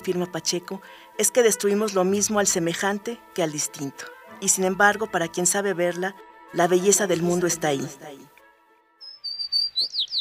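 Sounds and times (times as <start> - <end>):
speech: 0.0 - 8.3
sparrow chirping: 9.0 - 10.1.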